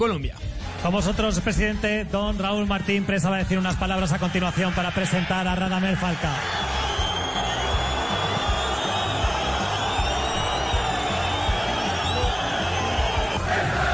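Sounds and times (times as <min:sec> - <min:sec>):
speech: 0:00.0 - 0:06.6
stadium crowd roar: 0:02.9 - 0:13.9.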